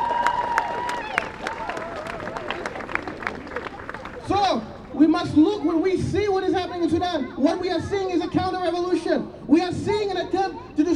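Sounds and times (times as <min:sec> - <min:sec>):
audience applause: 0:00.0 - 0:05.1
speech: 0:05.2 - 0:10.9.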